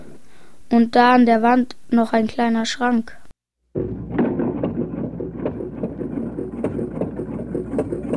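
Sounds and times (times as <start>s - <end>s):
speech: 0.7s - 3.2s
washing machine washing laundry: 3.8s - 8.1s.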